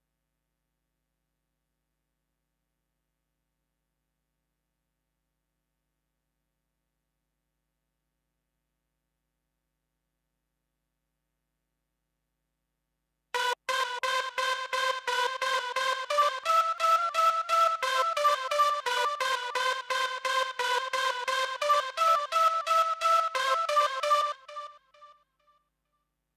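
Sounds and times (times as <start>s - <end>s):
synth: 13.4s - 25.1s.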